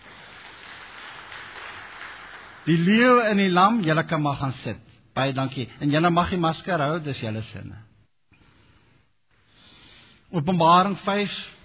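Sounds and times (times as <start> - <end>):
church audience clapping: 0.0 - 3.4
speech: 2.6 - 7.9, 10.3 - 11.6.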